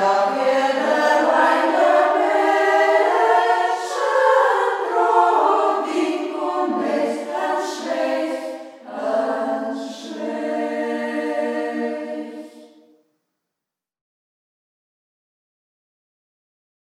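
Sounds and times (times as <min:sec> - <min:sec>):
choir singing: 0:00.0 - 0:12.9.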